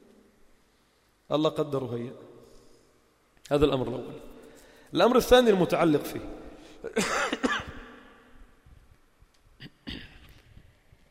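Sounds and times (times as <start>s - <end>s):
speech: 1.3s - 2.3s, 3.5s - 4.3s, 4.9s - 7.4s
man coughing and clearing his throat during a lesson at a mosque: 6.8s - 7.9s, 9.6s - 10.4s.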